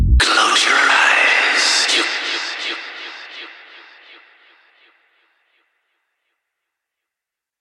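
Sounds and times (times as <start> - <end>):
twisted techno music: 0.2 - 4.6.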